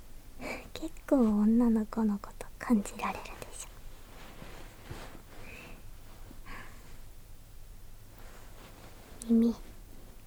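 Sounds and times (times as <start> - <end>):
speech: 0.8 - 3.4, 9.3 - 9.7
breathing: 4.4 - 7.0.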